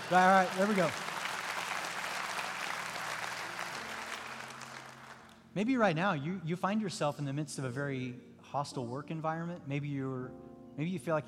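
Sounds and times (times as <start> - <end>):
audience clapping: 0.0 - 5.4
speech: 0.1 - 1.0, 5.6 - 11.2.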